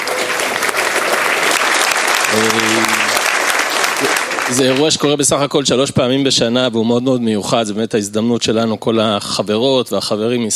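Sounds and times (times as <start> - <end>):
crowd applause: 0.0 - 5.5
speech: 2.3 - 3.0, 4.0 - 10.5.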